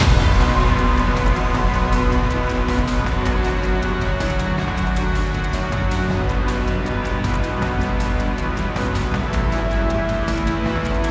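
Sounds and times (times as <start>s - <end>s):
battle music: 0.0s - 11.0s.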